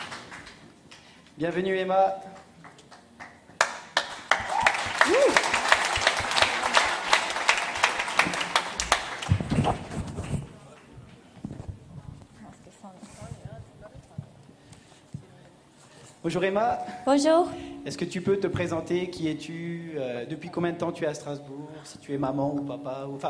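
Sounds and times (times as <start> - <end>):
audience applause: 0.0 - 0.6, 2.6 - 10.4
speech: 1.4 - 2.5, 16.3 - 23.2
brief cheer: 4.4 - 5.6.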